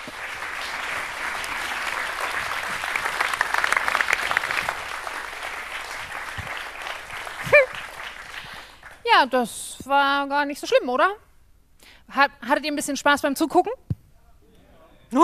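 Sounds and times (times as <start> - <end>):
audience applause: 0.0 - 9.0
speech: 9.2 - 11.3, 12.1 - 13.9.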